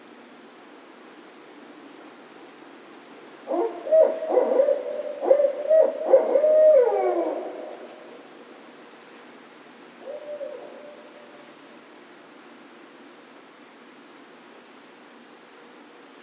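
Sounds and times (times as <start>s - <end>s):
barred owl hooting: 3.5s - 8.6s, 10.0s - 11.6s.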